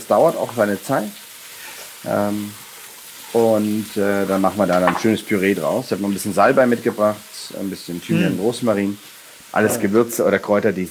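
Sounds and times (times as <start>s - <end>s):
onions frying in sunflower oil with young garlic: 0.0s - 10.9s
speech: 0.1s - 1.2s, 2.0s - 2.6s, 3.3s - 10.9s
short voiced tone: 8.1s - 8.4s.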